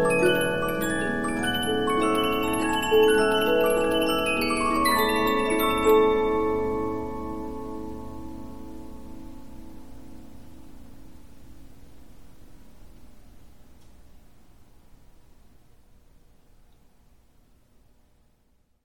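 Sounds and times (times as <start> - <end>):
Polyphon 15-inch disc music box playing: 0.0 - 7.6.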